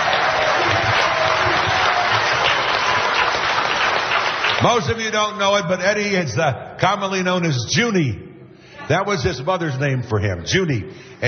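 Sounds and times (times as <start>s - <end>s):
crowd applauding: 0.0s - 5.4s
speech: 4.6s - 8.2s, 8.9s - 11.2s.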